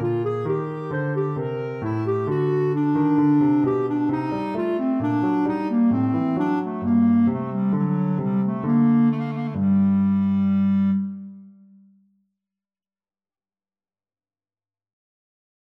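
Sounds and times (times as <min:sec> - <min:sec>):
clarinet playing a bourree: 0:00.0 - 0:11.4.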